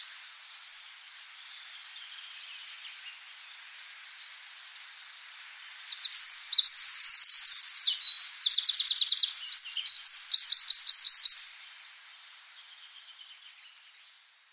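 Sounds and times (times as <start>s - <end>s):
Eurasian wren song of shrill notes and rattling trills: 0.0s - 0.4s, 1.1s - 14.4s.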